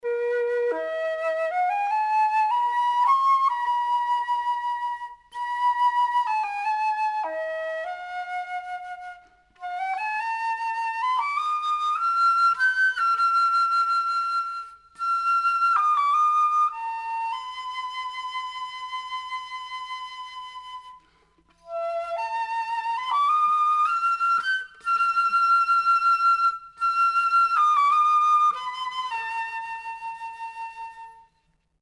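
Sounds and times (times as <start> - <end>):
flute: 0.0 - 31.8.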